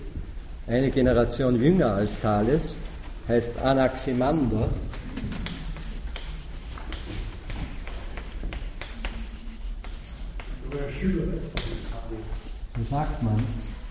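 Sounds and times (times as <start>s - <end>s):
speech: 0.7s - 5.0s, 12.9s - 13.7s
writing a philosopher's name on a board: 4.9s - 13.8s.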